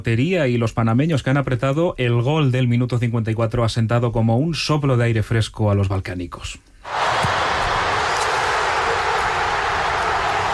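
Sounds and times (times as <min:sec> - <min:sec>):
speech: 0:00.0 - 0:07.1
Croatian fans cheering a goal in stadium: 0:06.9 - 0:10.5.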